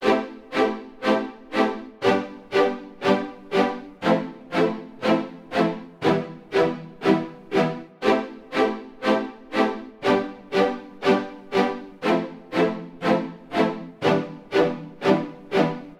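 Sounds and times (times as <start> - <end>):
natural strings chord progression in A minor: 0.0 - 15.9.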